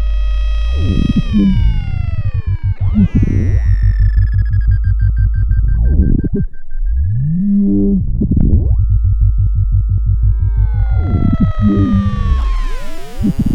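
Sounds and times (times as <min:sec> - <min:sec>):
synthesizer VC LFO modulated tone: 0:00.0 - 0:13.5.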